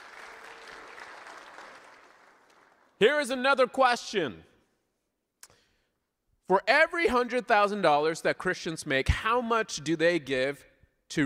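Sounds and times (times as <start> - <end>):
audience clapping: 0.0 - 3.0
speech: 3.0 - 4.5, 6.5 - 11.2.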